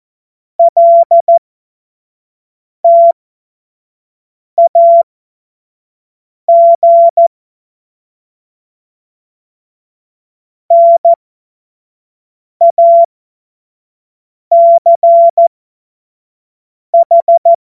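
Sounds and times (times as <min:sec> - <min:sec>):
Morse code tones: 0:00.6 - 0:01.4, 0:02.9 - 0:03.2, 0:04.6 - 0:05.0, 0:06.5 - 0:07.2, 0:10.7 - 0:11.2, 0:12.6 - 0:13.1, 0:14.5 - 0:15.4, 0:17.0 - 0:17.6.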